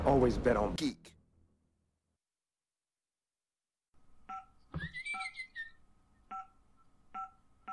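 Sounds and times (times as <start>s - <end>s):
speech: 0.2s - 1.2s
home alarm keypad two-tone beeps: 4.3s - 5.7s.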